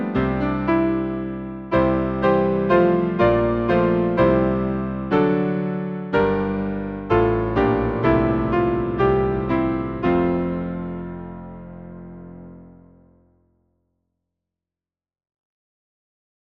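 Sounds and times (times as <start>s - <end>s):
hymn played on piano: 0.0s - 13.1s.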